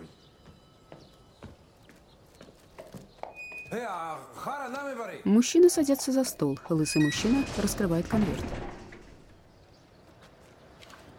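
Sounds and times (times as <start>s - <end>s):
footsteps of an Afghan man walking away: 0.2s - 3.8s, 9.7s - 11.1s
speech: 3.7s - 8.7s.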